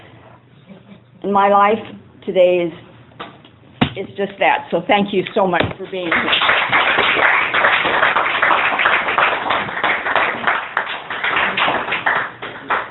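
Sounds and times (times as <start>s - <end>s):
speech: 1.2s - 2.8s, 4.0s - 6.8s
audience applause: 6.0s - 12.8s.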